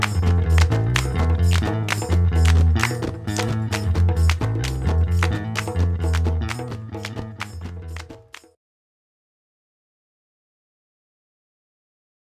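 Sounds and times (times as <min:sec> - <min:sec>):
bass: 0:00.0 - 0:08.5.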